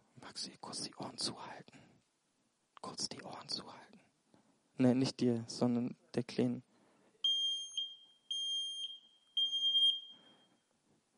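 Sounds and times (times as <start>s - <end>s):
speech: 0.2s - 1.9s, 2.8s - 4.1s, 4.8s - 6.7s
smoke detector alarm beeping: 7.2s - 10.6s.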